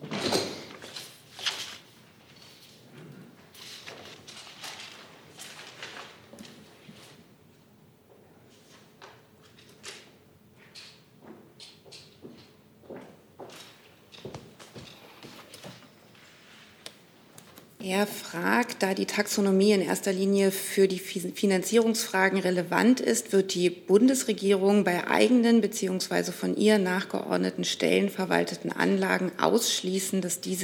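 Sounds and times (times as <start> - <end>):
people changing seats at a government press conference: 0.0 - 7.3, 8.5 - 17.7
speech: 17.8 - 30.6.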